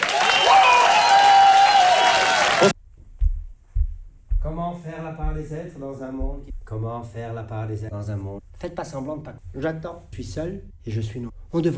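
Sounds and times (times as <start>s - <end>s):
audience applause: 0.0s - 2.8s
speech: 5.4s - 11.7s.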